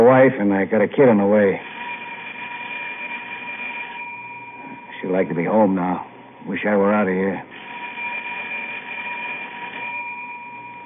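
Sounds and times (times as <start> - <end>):
speech: 0.0 - 1.7, 5.1 - 7.5
emergency bell ringing in elevator: 1.6 - 6.2, 7.5 - 10.8.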